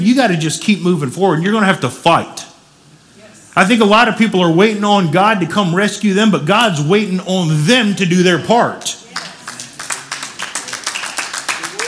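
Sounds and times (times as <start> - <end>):
speech: 0.0 - 2.5, 3.6 - 9.0
crowd clapping: 9.0 - 11.8.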